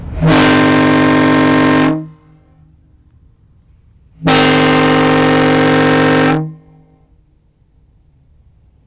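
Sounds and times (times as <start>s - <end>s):
foghorn: 0.2s - 2.8s, 4.2s - 7.3s.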